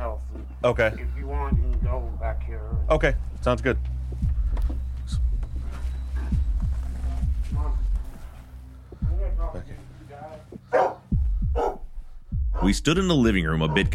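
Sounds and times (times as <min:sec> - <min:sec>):
low throbbing hum: 0:00.0 - 0:10.0, 0:11.1 - 0:13.9
speech: 0:00.6 - 0:04.2, 0:12.6 - 0:13.9
caged bulldog barking indoors at a house: 0:10.7 - 0:11.9, 0:12.6 - 0:12.8, 0:13.6 - 0:13.9.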